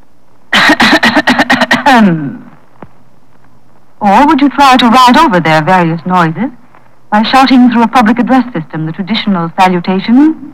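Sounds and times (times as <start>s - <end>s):
throat clearing: 0.6s - 2.5s
speech: 1.9s - 2.4s, 4.0s - 10.5s.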